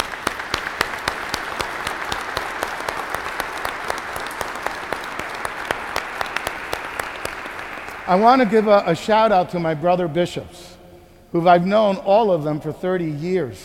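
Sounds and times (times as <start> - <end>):
audience applause: 0.0 - 8.8
speech: 8.1 - 10.7, 11.3 - 13.6.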